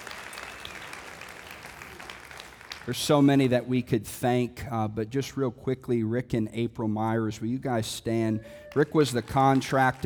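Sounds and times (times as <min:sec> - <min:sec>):
audience applause: 0:00.0 - 0:03.2, 0:08.6 - 0:10.0
speech: 0:02.9 - 0:10.0.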